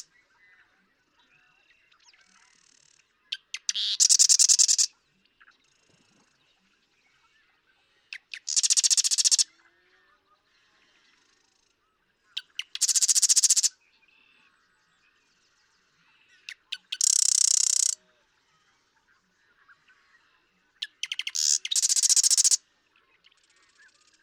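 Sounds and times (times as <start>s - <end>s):
Marsh Wren rattling song: 3.6s - 4.9s, 8.3s - 9.4s, 12.5s - 13.7s, 16.8s - 18.0s, 20.8s - 22.6s.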